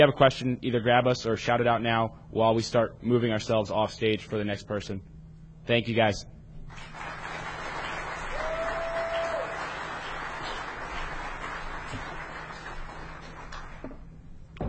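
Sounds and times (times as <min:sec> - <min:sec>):
speech: 0:00.0 - 0:07.1
audience applause: 0:06.7 - 0:13.9.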